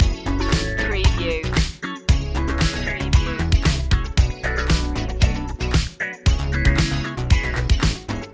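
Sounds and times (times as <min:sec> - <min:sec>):
showtime music loop: 0:00.0 - 0:08.3.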